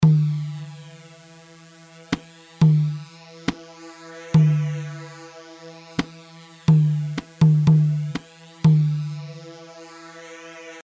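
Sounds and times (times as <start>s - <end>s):
tabol drum: 0.0s - 0.6s, 2.6s - 3.6s, 4.4s - 4.9s, 6.7s - 9.2s.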